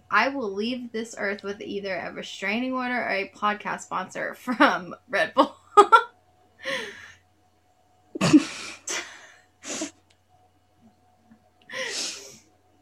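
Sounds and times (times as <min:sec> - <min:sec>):
speech: 0:00.1 - 0:06.0
wet congested sniffling through a runny nose: 0:08.2 - 0:10.0, 0:11.7 - 0:12.5.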